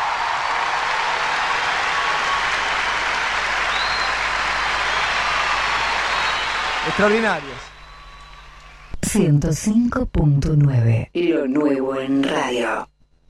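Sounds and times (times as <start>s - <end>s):
audience applause: 0.0s - 8.8s
speech: 6.9s - 7.7s, 9.0s - 12.9s.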